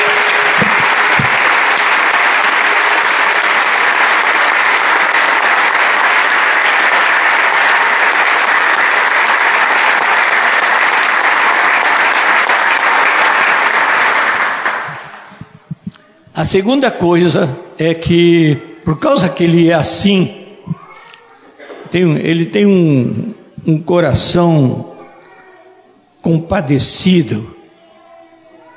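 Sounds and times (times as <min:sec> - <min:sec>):
audience applause: 0:00.0 - 0:15.6
speech: 0:16.4 - 0:20.4, 0:21.9 - 0:24.9, 0:26.2 - 0:27.6.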